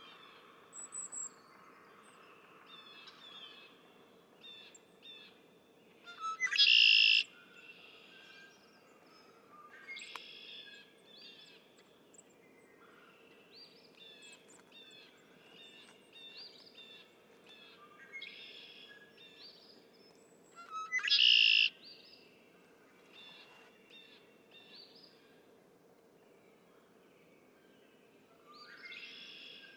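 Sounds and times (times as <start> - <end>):
Red-winged Blackbird: 6.1 - 7.3, 20.6 - 21.7.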